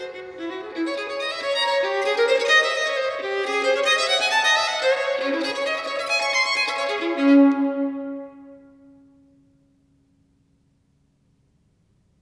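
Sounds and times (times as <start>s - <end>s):
solo violin piece in D minor: 0.0s - 9.3s.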